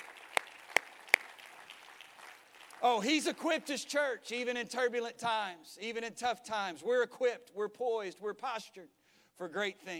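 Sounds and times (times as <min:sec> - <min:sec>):
audience clapping: 0:00.0 - 0:03.8
speech: 0:02.8 - 0:09.9.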